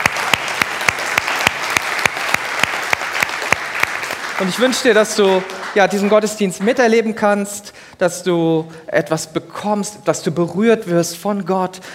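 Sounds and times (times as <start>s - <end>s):
audience applause: 0.0s - 6.9s
speech: 4.4s - 11.9s.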